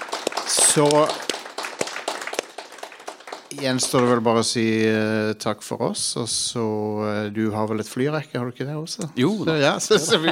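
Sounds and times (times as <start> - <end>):
audience applauding: 0.0 - 4.5
speech: 0.8 - 1.2, 3.6 - 10.3
laughter: 9.6 - 10.3.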